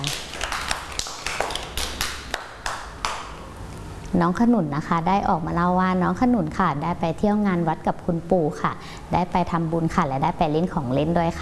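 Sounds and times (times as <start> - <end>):
group of children clapping: 0.0 - 3.4
speech: 4.2 - 11.3.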